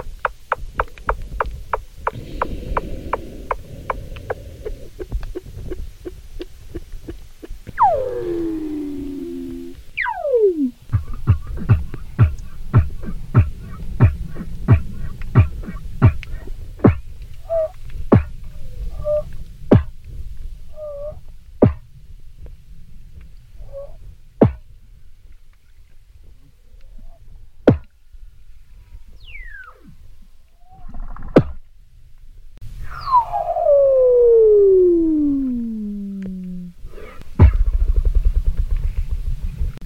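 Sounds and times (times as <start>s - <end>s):
Weddell seal clicks and pulses: 0.0s - 19.9s, 33.0s - 39.2s
low rumble: 1.3s - 25.4s, 31.6s - 39.8s
Weddell seal short chirps: 2.1s - 18.3s, 18.9s - 19.9s, 20.7s - 21.8s, 32.8s - 37.2s
Weddell seal long descending whistles: 7.8s - 10.8s, 16.9s - 17.8s, 18.9s - 19.9s, 20.8s - 21.8s, 32.8s - 37.2s.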